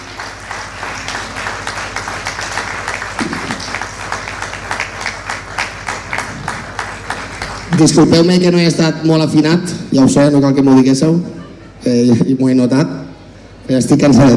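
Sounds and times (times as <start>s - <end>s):
audience applause: 0.0s - 8.4s
speech: 7.8s - 13.0s, 13.7s - 14.3s.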